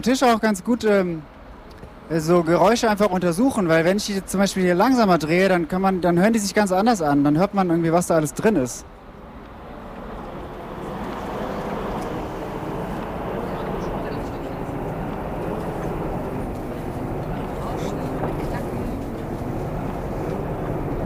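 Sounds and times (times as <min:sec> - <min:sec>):
speech: 0:00.0 - 0:01.3, 0:02.1 - 0:08.9
tram rumbling past: 0:07.9 - 0:21.0.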